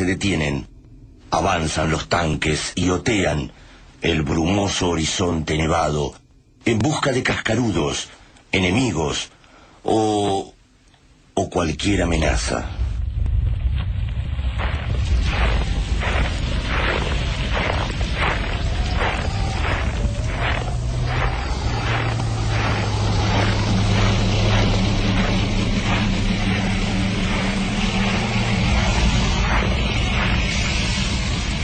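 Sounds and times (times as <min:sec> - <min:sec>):
speech: 0:00.0 - 0:00.7, 0:01.3 - 0:10.5, 0:11.4 - 0:12.8
collapsing rumbles: 0:12.2 - 0:31.6
distant explosions: 0:12.8 - 0:31.6.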